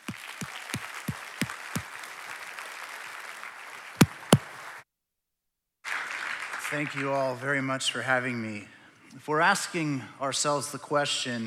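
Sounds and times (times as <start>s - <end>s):
audience applause welcoming a speaker: 0.0s - 4.6s
speech: 6.7s - 11.4s.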